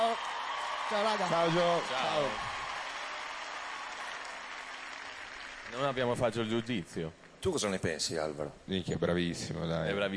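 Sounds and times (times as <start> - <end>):
audience applause: 0.0 - 6.7
speech: 0.1 - 2.6, 5.7 - 10.1.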